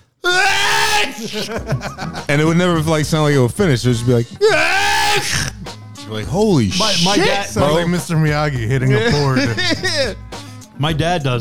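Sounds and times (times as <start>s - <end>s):
man imitating a huge drawn-out sneeze: 0.2s - 1.5s, 4.4s - 5.6s, 6.7s - 7.5s
laughter: 0.6s - 10.6s
speech: 1.2s - 5.5s, 6.1s - 10.2s, 10.8s - 11.3s.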